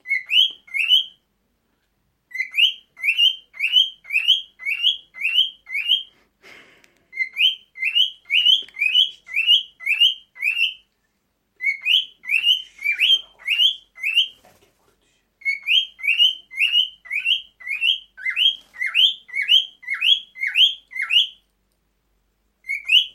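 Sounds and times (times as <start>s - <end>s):
male cockatiel courtship song: 0.0s - 1.2s, 2.3s - 6.1s, 7.1s - 10.9s, 11.6s - 14.4s, 15.4s - 21.4s, 22.6s - 23.1s.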